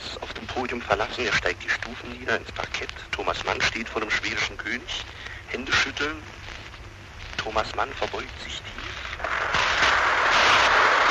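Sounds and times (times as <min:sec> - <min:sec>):
speech: 0:00.5 - 0:06.4, 0:07.4 - 0:08.8
large crowd applauding in a ceremony hall: 0:09.2 - 0:11.0.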